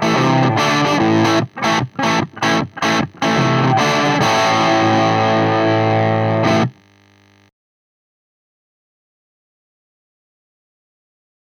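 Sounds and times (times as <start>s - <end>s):
crunch channel of three-channel valve guitar amplifier with EF86 pentode and EL84 power saturation: 0.0s - 7.5s.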